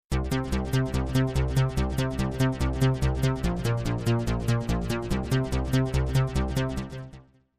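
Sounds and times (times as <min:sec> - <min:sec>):
bass: 0:00.1 - 0:07.3.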